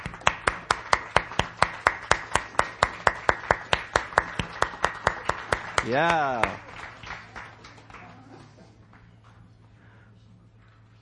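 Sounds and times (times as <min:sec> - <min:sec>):
rhythmic clapping: 0:00.0 - 0:08.3
speech: 0:05.8 - 0:06.7.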